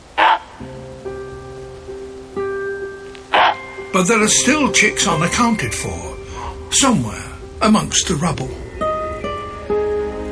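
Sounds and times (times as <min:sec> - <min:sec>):
barnacle goose honking call: 0:00.2 - 0:00.4, 0:03.3 - 0:04.4
sustained tones: 0:03.5 - 0:10.3
speech: 0:03.9 - 0:08.6.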